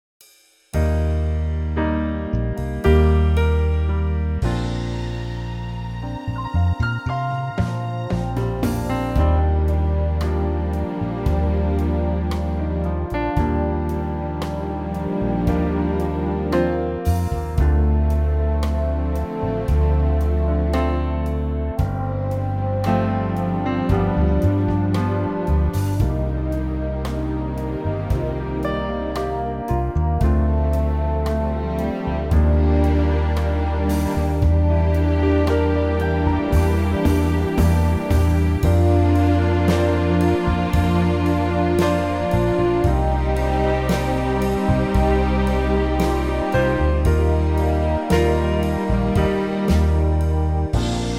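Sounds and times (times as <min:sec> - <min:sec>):
orchestra in B flat: 0:00.8 - 0:51.1.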